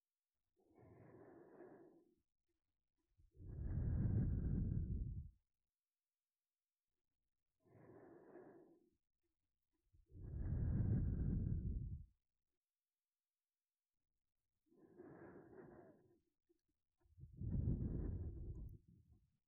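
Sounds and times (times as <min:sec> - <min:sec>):
sleep breathing loop: 0:00.8 - 0:02.0, 0:03.5 - 0:05.3, 0:07.7 - 0:08.8, 0:10.2 - 0:12.0, 0:14.8 - 0:16.2, 0:17.4 - 0:18.8.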